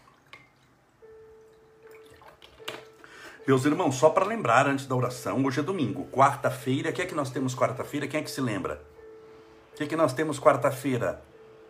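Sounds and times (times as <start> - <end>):
small splashes: 0.0 - 0.8, 1.5 - 3.0
water poured into a small drinking cup: 1.4 - 2.6
speech: 3.4 - 8.9, 9.8 - 11.3.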